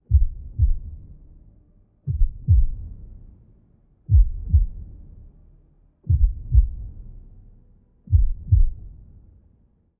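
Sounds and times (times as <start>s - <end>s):
heartbeat ambience: 0.0s - 1.0s, 2.1s - 3.0s, 4.1s - 4.9s, 6.0s - 6.9s, 8.1s - 9.0s.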